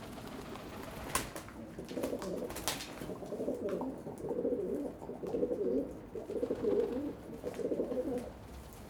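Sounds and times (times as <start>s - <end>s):
pigeons cooing on a balcony: 0.2s - 8.4s.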